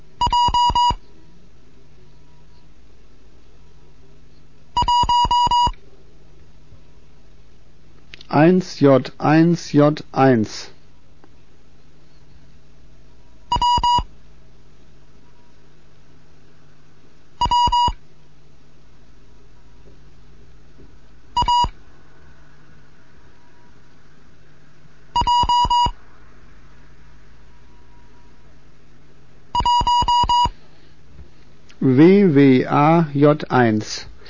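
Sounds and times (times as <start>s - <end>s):
Morse code beeps: 0.2s - 1.0s, 4.8s - 5.7s, 13.5s - 14.1s, 17.4s - 18.0s, 21.4s - 21.7s, 25.2s - 26.0s, 29.6s - 30.5s
speech: 8.4s - 10.8s, 31.9s - 34.2s.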